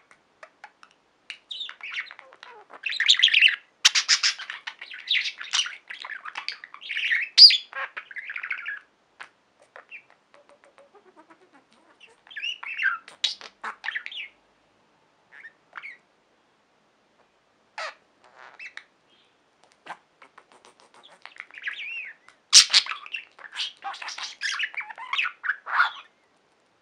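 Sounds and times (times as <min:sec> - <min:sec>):
budgerigar chatter: 0:01.5 - 0:14.3, 0:20.3 - 0:26.1.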